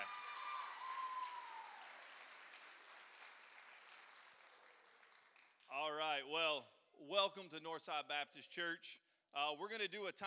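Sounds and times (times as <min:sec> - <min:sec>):
church audience applause: 0:00.0 - 0:05.6
speech: 0:05.7 - 0:10.2.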